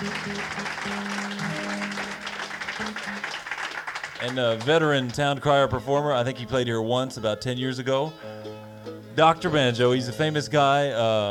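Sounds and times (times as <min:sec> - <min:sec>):
audience applause welcoming a guitarist at a bluegrass show: 0:00.0 - 0:05.4
speech: 0:04.2 - 0:08.4, 0:09.2 - 0:11.3.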